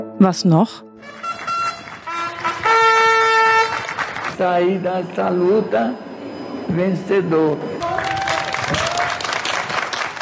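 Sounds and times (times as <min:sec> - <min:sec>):
speech: 0:00.2 - 0:01.3, 0:04.4 - 0:06.0, 0:06.7 - 0:07.8, 0:08.7 - 0:09.0
applause: 0:01.1 - 0:04.4, 0:07.8 - 0:10.2.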